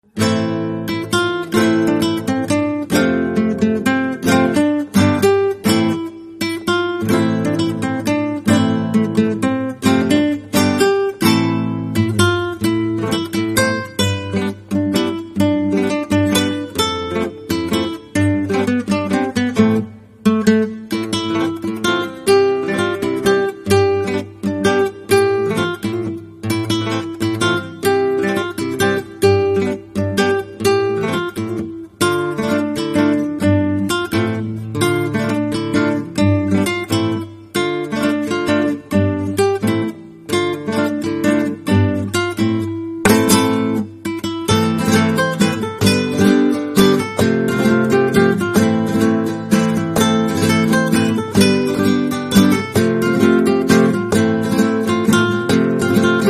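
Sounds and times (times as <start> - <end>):
guitar: 0.0 - 56.2.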